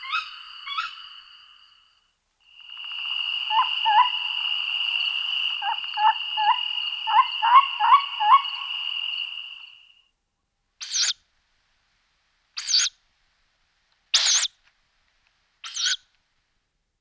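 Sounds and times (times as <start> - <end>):
tawny owl calling: 0.0 - 1.2, 2.7 - 9.9, 10.8 - 11.2, 12.6 - 13.0, 14.1 - 14.6, 15.6 - 16.1.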